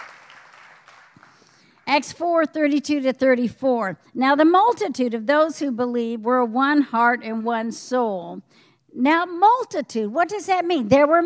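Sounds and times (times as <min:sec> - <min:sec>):
audience clapping: 0:00.0 - 0:01.9
speech: 0:01.9 - 0:11.2.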